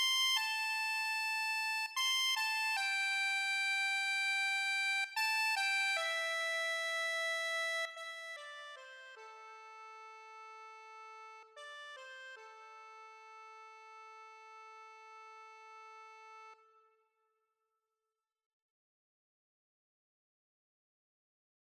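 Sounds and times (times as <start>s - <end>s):
accordion: 0.0s - 16.8s.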